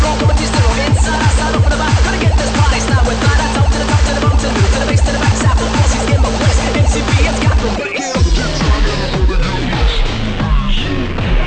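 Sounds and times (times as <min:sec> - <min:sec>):
bass through a speaker: 0:00.0 - 0:11.3.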